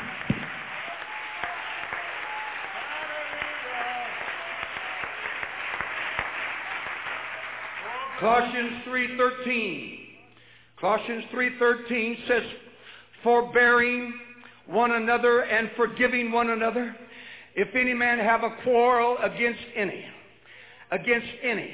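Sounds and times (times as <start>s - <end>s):
audience clapping hands: 0.0s - 8.8s
speech: 8.2s - 10.0s, 10.8s - 12.6s, 13.2s - 17.0s, 17.6s - 20.2s, 20.9s - 21.7s.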